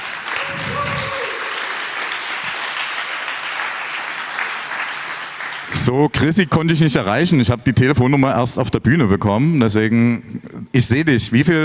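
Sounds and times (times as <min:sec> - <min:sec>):
audience applause: 0:00.0 - 0:05.9
speech: 0:05.8 - 0:11.6.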